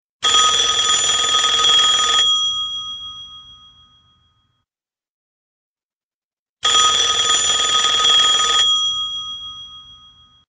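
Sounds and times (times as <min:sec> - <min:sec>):
retro phone: 0:00.2 - 0:03.0, 0:06.6 - 0:10.4.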